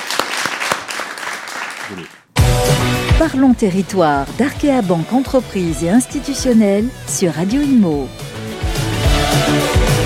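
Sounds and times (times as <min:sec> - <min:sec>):
audience applause: 0:00.0 - 0:02.2
speech: 0:01.9 - 0:08.3, 0:09.3 - 0:09.9.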